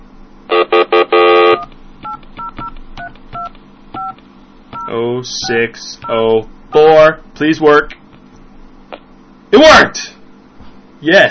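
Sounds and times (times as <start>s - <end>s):
touch-tone keypad dialing tones on a telephone line: 1.2s - 6.2s
speech: 4.9s - 8.0s, 9.5s - 10.1s, 11.0s - 11.2s.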